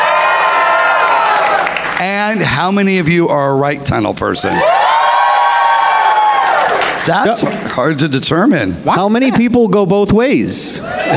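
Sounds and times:
audience screaming: 0.0 - 2.0, 4.5 - 7.4, 10.8 - 11.1
speech: 2.0 - 4.8, 7.1 - 11.1.

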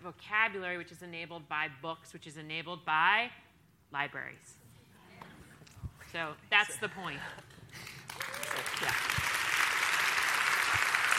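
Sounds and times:
speech: 0.1 - 4.6, 6.1 - 9.2
applause: 7.8 - 11.1.

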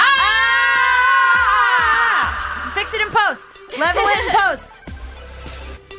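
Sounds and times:
people screaming into microphones: 0.0 - 3.4
speech: 3.3 - 4.8
laughter: 3.7 - 4.7.

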